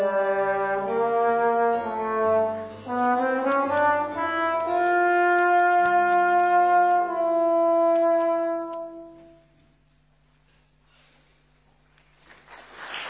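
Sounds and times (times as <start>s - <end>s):
music: 0.0s - 10.0s.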